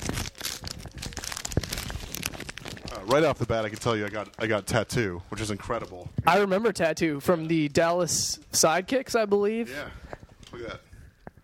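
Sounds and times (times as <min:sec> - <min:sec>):
crinkly plastic trading card pack wrapper torn open and crumpled: 0:00.0 - 0:04.9
speech: 0:03.1 - 0:10.8.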